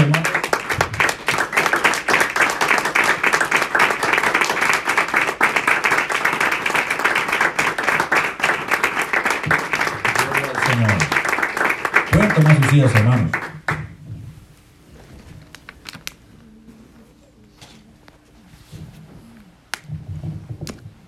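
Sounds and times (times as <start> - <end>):
audience applause: 0.0 - 14.0
speech: 12.8 - 13.4.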